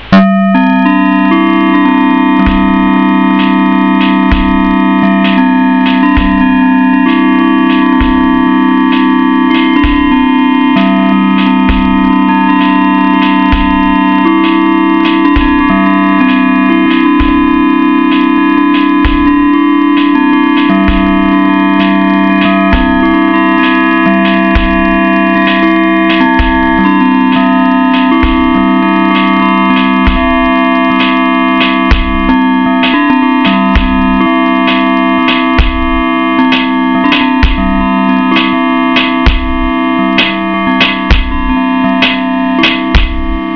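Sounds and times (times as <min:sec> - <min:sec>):
bells ringing: 0:00.0 - 0:43.5.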